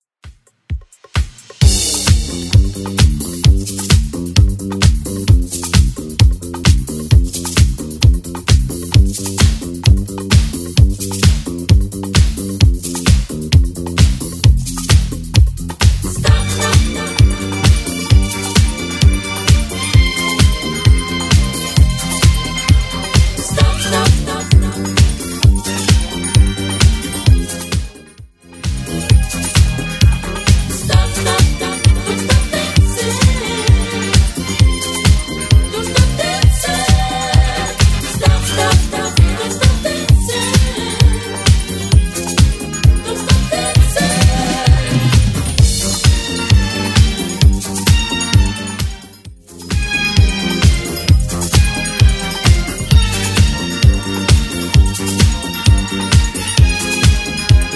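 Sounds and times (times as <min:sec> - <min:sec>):
1980s style music at 131 bpm: 0:00.2 - 0:57.7.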